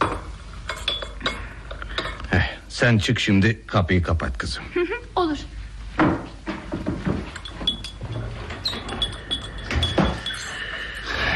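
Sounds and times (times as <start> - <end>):
tea glasses clinking on a tray: 0.0 - 2.2, 7.2 - 11.3
speech: 2.7 - 6.2.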